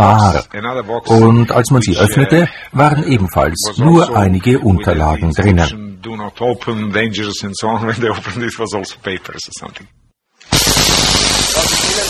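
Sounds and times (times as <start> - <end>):
speech: 0.0 - 11.8
high-voltage spark gap discharging: 10.4 - 12.0.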